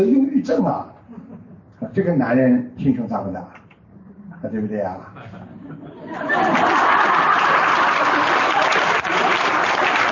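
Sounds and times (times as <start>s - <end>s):
speech: 0.0s - 1.2s, 1.8s - 3.6s, 4.4s - 5.4s
laughter: 5.1s - 9.6s
audience applause: 6.2s - 10.1s.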